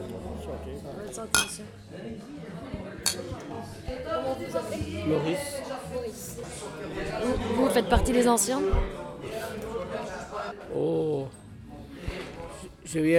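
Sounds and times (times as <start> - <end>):
murmur of voices in a bar: 0.0 - 13.1
speech: 0.6 - 9.6, 10.5 - 11.4, 12.9 - 13.1
glasses and cutlery clinking in a bar: 1.3 - 1.7, 3.0 - 3.5.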